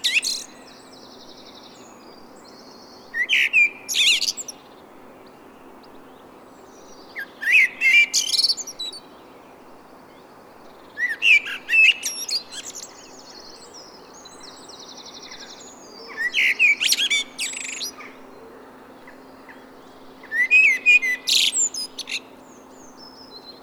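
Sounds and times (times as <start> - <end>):
common blackbird singing: 0.0 - 1.9, 6.9 - 9.0, 10.9 - 23.6
soft steady hiss: 0.0 - 23.6.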